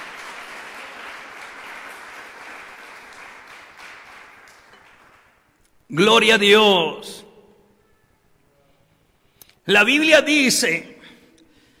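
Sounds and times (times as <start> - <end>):
audience applause: 0.0 - 5.4
speech: 5.9 - 7.2, 9.7 - 11.0.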